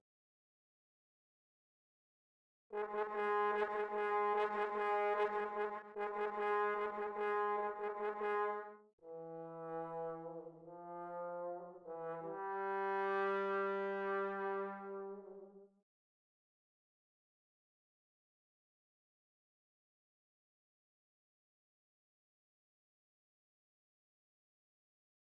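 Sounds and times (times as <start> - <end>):
bass trombone: 2.7 - 15.4.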